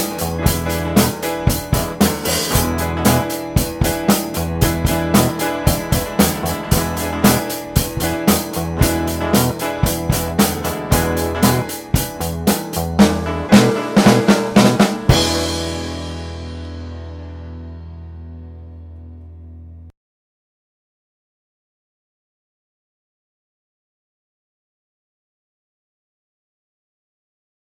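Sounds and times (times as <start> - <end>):
E chord jam music: 0.0 - 19.6.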